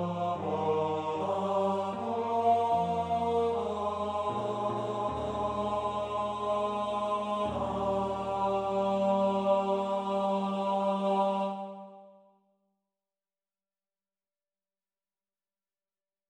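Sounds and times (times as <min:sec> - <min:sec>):
tenor singing: 0:00.0 - 0:12.0.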